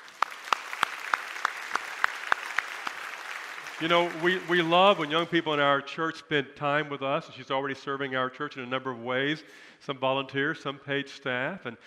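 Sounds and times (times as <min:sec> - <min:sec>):
audience applauding: 0:00.0 - 0:05.6
sharp claps: 0:00.0 - 0:05.6
speech: 0:03.8 - 0:11.8.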